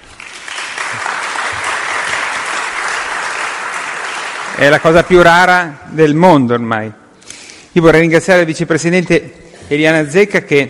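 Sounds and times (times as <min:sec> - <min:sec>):
audience applause: 0:00.0 - 0:05.1
speech: 0:04.6 - 0:07.0, 0:07.7 - 0:10.6.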